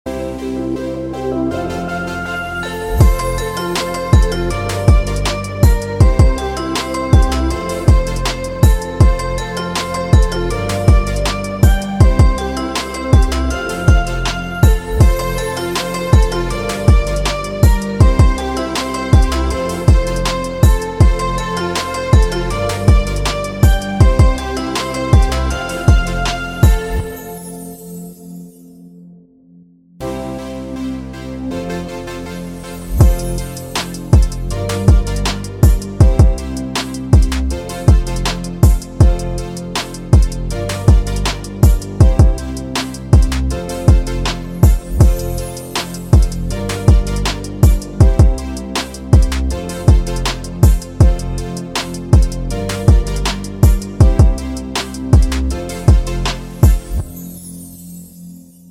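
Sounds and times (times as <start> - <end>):
urban holiday background music in F major at 160 BPM: 0.1 - 28.4, 30.0 - 57.4.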